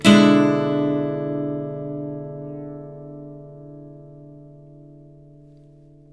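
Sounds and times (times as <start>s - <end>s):
blues guitar chords: 0.0s - 6.1s.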